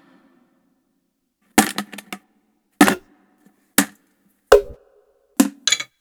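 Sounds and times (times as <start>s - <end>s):
foley sounds: 1.6s - 2.2s, 2.8s - 3.1s, 5.4s - 5.9s.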